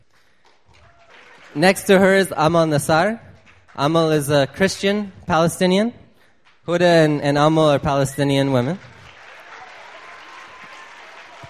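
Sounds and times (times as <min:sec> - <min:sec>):
audience applause: 0:00.4 - 0:02.2, 0:08.7 - 0:11.4
speech: 0:01.5 - 0:06.0, 0:06.6 - 0:08.9.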